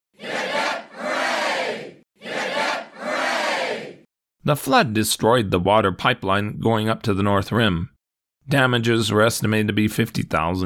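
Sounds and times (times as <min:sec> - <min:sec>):
crowd of men shouting: 0:00.2 - 0:04.0
speech: 0:04.4 - 0:07.9, 0:08.5 - 0:10.6.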